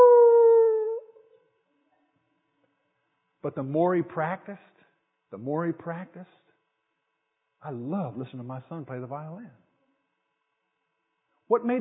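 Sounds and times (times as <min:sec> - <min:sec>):
person imitating a dog howling: 0:00.0 - 0:01.1
speech: 0:03.4 - 0:06.4, 0:07.6 - 0:09.6, 0:11.5 - 0:11.7.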